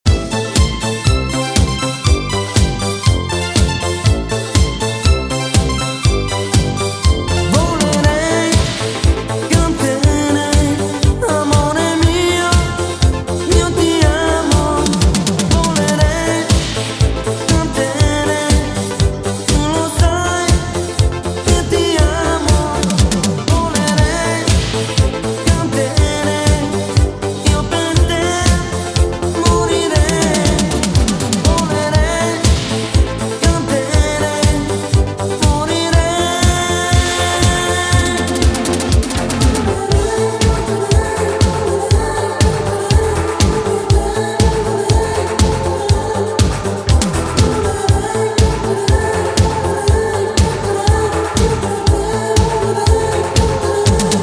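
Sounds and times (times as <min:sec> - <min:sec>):
vocals: 0:00.0 - 0:54.2.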